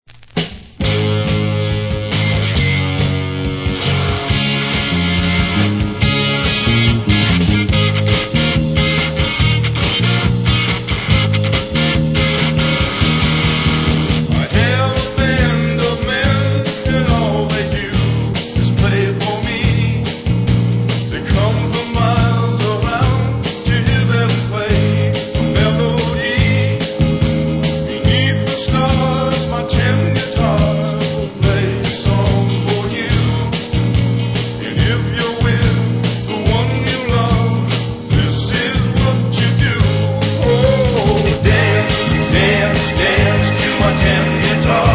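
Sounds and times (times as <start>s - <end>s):
guitars: 0.1s - 44.9s.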